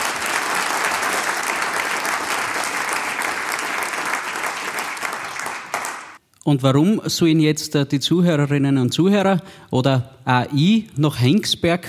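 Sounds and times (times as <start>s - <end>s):
crowd applause: 0.0s - 6.2s
speech: 6.5s - 11.8s.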